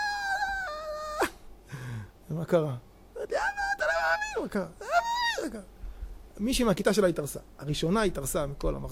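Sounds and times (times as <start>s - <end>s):
person imitating excited screaming: 0.0s - 1.4s, 3.2s - 5.7s
speech: 2.3s - 3.4s, 4.4s - 5.8s, 6.4s - 8.8s.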